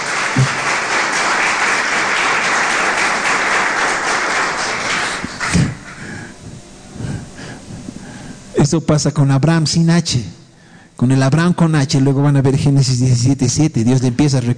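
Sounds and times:
audience applause: 0:00.0 - 0:06.1
speech: 0:08.7 - 0:10.4, 0:11.0 - 0:14.5.

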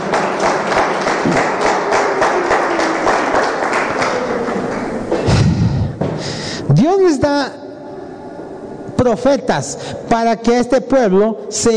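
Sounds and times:
audience applause: 0:00.0 - 0:05.7
speech: 0:07.0 - 0:07.6, 0:09.0 - 0:11.7.

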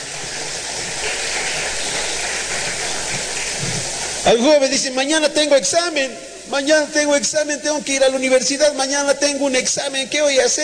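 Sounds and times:
audience applause: 0:00.0 - 0:05.4
speech: 0:04.3 - 0:10.6.

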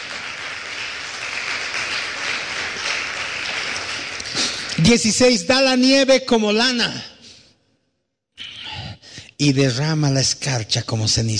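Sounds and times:
applause: 0:00.0 - 0:05.1
speech: 0:04.8 - 0:07.1, 0:09.4 - 0:11.3.

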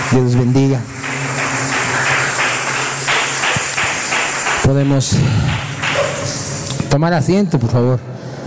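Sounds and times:
speech: 0:00.1 - 0:01.0, 0:04.7 - 0:05.7, 0:06.9 - 0:08.2
audience applauding: 0:00.9 - 0:04.7.

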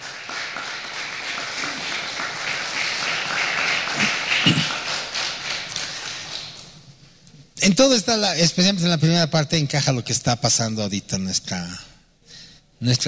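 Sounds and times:
crowd applauding: 0:00.0 - 0:06.8
speech: 0:07.6 - 0:11.9, 0:12.8 - 0:13.0.

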